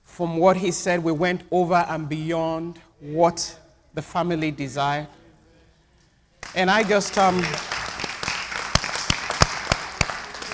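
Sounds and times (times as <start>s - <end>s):
speech: 0.2s - 5.2s, 6.5s - 7.7s
church congregation clapping in celebration during a service: 6.4s - 10.5s.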